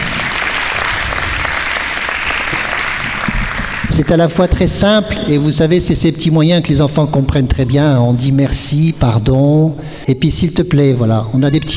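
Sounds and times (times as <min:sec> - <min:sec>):
audience applause: 0:00.0 - 0:04.4
speech: 0:04.0 - 0:11.7.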